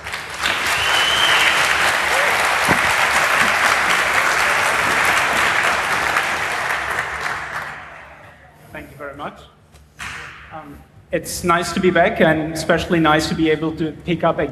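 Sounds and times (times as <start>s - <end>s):
audience applause: 0.0s - 8.6s
speech: 11.1s - 14.5s.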